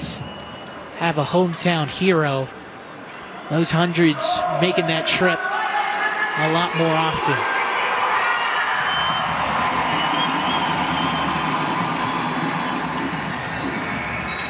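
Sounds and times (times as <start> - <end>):
speech: 1.0 - 2.6, 3.5 - 5.5, 6.4 - 7.6
applause from the bench: 8.2 - 14.4.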